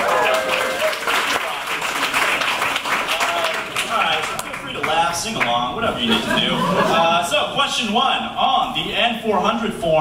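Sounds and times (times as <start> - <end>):
round of applause: 0.0 - 5.5
speech: 5.2 - 9.9
laughter: 6.0 - 7.4.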